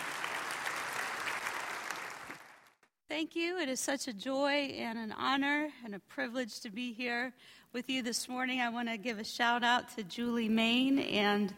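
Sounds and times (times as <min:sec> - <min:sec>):
audience at a morning gathering applauding to welcome a speaker: 0:00.0 - 0:02.8
speech: 0:03.1 - 0:11.5.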